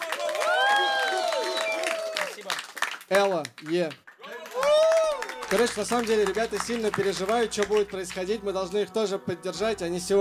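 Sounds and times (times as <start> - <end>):
audience whooping: 0.0 - 2.5, 4.2 - 6.4
audience applause: 0.0 - 8.2
speech: 3.1 - 4.0, 5.5 - 10.1.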